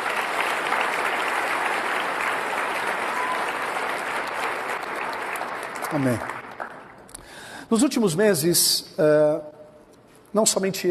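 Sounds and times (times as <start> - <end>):
audience applause: 0.0 - 7.1
speech: 5.9 - 6.4, 7.7 - 9.6, 10.3 - 10.9.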